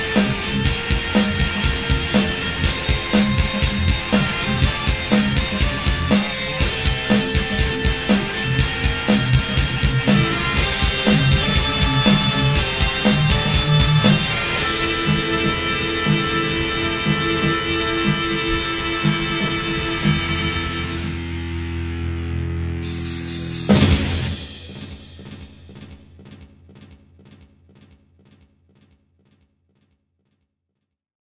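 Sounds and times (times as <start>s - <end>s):
bagpipe music: 0.0s - 23.5s.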